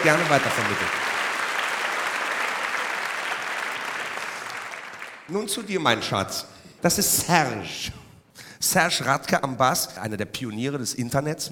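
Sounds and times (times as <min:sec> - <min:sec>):
speech: 0:00.0 - 0:01.1, 0:05.3 - 0:08.0, 0:08.6 - 0:11.5
audience applause: 0:00.0 - 0:05.3.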